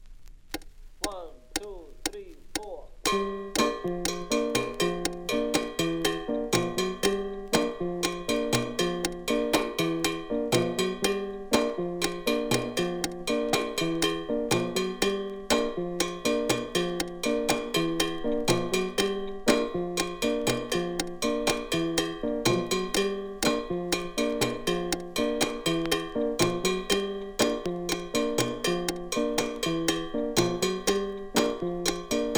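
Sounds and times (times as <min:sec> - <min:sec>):
mambo rhythm played on a cowbell: 0:01.0 - 0:32.3.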